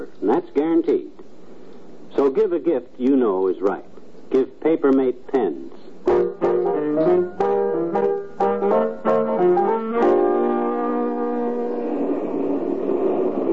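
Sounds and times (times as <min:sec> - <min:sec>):
speech: 0:00.3 - 0:01.1, 0:02.3 - 0:06.4
bus arriving: 0:06.1 - 0:13.5.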